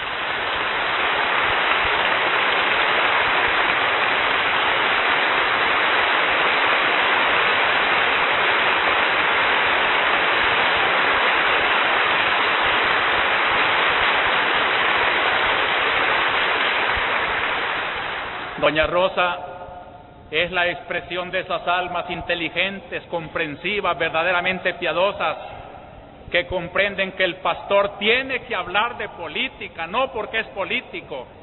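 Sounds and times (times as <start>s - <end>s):
large crowd applauding: 0.0s - 18.7s
speech: 18.7s - 19.5s, 20.3s - 25.5s, 26.3s - 31.4s.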